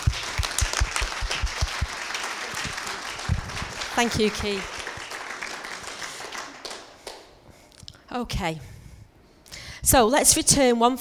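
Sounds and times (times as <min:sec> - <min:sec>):
audience applause: 0:00.0 - 0:07.3
speech: 0:04.0 - 0:04.8, 0:08.2 - 0:08.7, 0:09.9 - 0:11.0.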